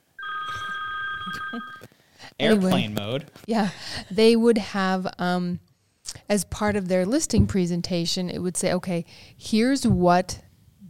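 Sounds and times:
phone ringing with an incoming call: 0.2 - 1.9
speech: 1.2 - 10.4.

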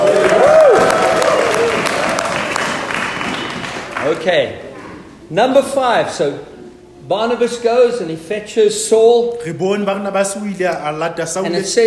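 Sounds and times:
audience cheering and applauding: 0.0 - 4.3
speech: 4.2 - 4.6, 5.3 - 11.8.

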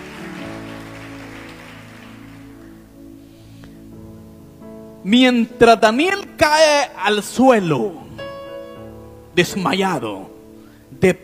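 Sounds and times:
audience applauding: 0.0 - 2.9
sustained organ-like musical tones: 0.0 - 11.2
speech: 5.0 - 8.1, 9.4 - 10.3, 11.0 - 11.2.

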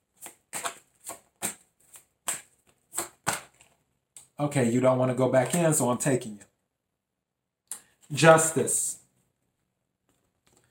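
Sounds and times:
tarot cards being shuffled and drawn: 0.1 - 3.8
speech: 4.4 - 6.5, 8.1 - 9.0.

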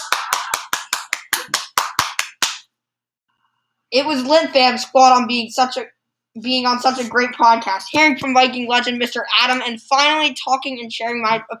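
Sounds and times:
audience applauding: 0.0 - 2.6
speech: 3.9 - 11.5.

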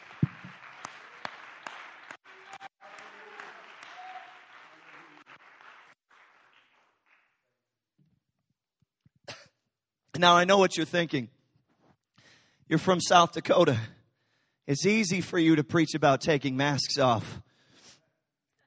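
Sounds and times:
audience clapping hands: 0.0 - 7.6
speech: 10.2 - 11.4, 12.7 - 14.0, 14.7 - 17.5.

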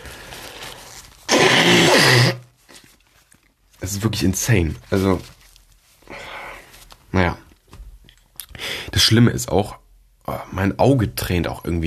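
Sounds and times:
person blowing nose: 0.0 - 2.7
speech: 3.9 - 5.4, 9.0 - 11.8.

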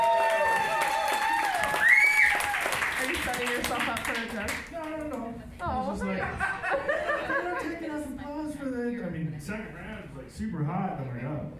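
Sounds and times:
high-pitched whoops and cheers: 0.0 - 2.8
audience applause: 0.0 - 5.0
laughter: 5.7 - 8.1
speech: 9.4 - 11.5.

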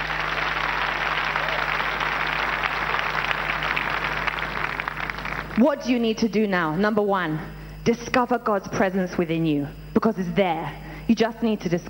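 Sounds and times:
crowd applause: 0.0 - 5.6
low electrical hum: 0.0 - 11.8
speech: 5.6 - 11.8.

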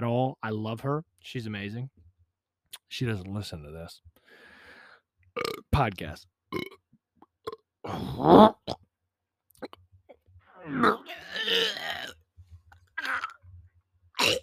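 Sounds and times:
speech: 0.0 - 2.0, 2.9 - 4.2, 5.4 - 6.8, 7.9 - 8.8
man burping in a gurgling belch: 5.4 - 5.7, 6.5 - 6.8, 7.4 - 8.8, 10.6 - 12.2, 14.2 - 14.4
strained vocal sounds: 10.5 - 12.1.

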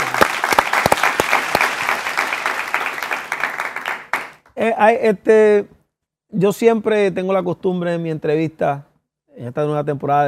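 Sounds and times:
audience applause: 0.0 - 4.4
speech: 4.6 - 10.2.

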